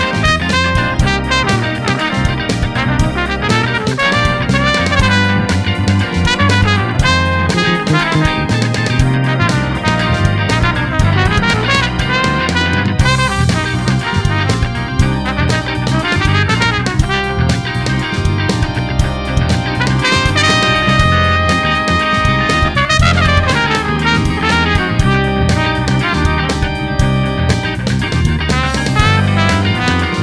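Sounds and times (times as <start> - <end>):
solo trumpet playing funk in C: 0.0 - 30.2.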